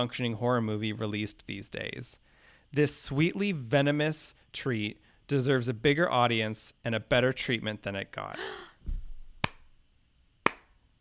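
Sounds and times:
speech: 0:00.0 - 0:08.7
slow clapping: 0:10.5 - 0:10.7.

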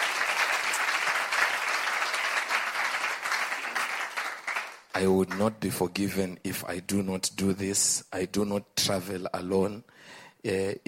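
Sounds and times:
audience applause: 0:00.0 - 0:05.0
speech: 0:05.0 - 0:10.8.

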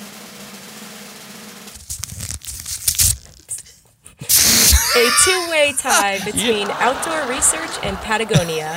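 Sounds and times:
envelope being torn open: 0:01.8 - 0:03.7
laughter: 0:04.3 - 0:08.7
speech: 0:05.0 - 0:08.7.

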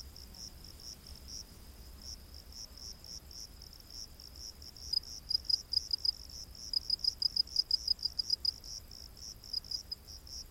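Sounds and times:
cricket chirping: 0:00.0 - 0:10.4
faint hiss: 0:00.0 - 0:10.4.

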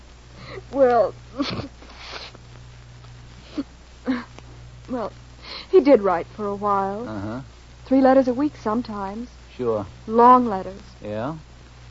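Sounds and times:
speech: 0:00.7 - 0:01.8, 0:05.0 - 0:05.2, 0:05.8 - 0:11.5
nose blowing: 0:01.5 - 0:02.4.

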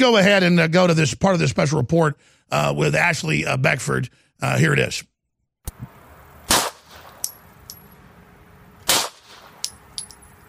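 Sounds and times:
speech: 0:00.0 - 0:05.1
Glock pistol firing: 0:06.5 - 0:07.5, 0:08.8 - 0:10.0
metallic clinks and ticks: 0:07.2 - 0:08.1, 0:09.4 - 0:10.4.

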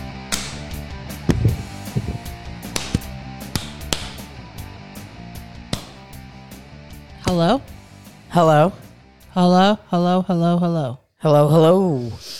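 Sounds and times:
hands clapping: 0:00.3 - 0:04.4, 0:05.7 - 0:06.2
steady tonal background: 0:00.3 - 0:09.7
speech: 0:07.3 - 0:07.8, 0:08.4 - 0:08.8, 0:09.4 - 0:12.3.

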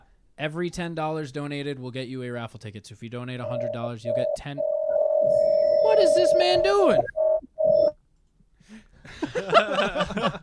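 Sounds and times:
speech: 0:00.4 - 0:07.2, 0:09.0 - 0:10.4
alarm going off: 0:03.4 - 0:07.9
laughter: 0:09.1 - 0:10.4.

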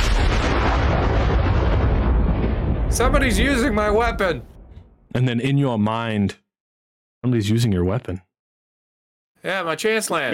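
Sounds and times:
thunder sound effect: 0:00.0 - 0:05.1
speech: 0:03.0 - 0:04.5, 0:05.1 - 0:06.4, 0:07.2 - 0:08.3, 0:09.4 - 0:10.3.

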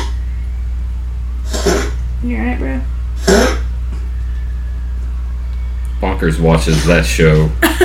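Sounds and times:
steady low hum: 0:00.0 - 0:07.8
speech: 0:02.2 - 0:03.6, 0:06.2 - 0:07.8
gagging and coughing: 0:03.2 - 0:03.7.

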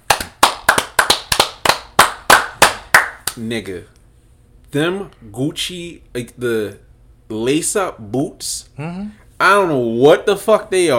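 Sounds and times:
hand clapping: 0:00.0 - 0:03.4
speech: 0:03.4 - 0:04.0, 0:04.7 - 0:10.9.

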